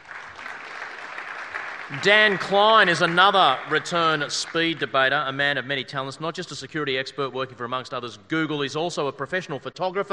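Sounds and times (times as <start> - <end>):
audience applause: 0.0 - 5.0
speech: 1.9 - 10.1.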